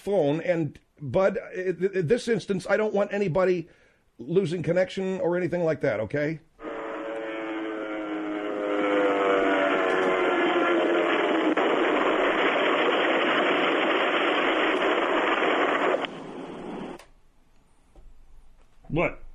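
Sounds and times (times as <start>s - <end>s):
speech: 0.0s - 6.5s
crashing plane engine roar: 6.6s - 17.0s.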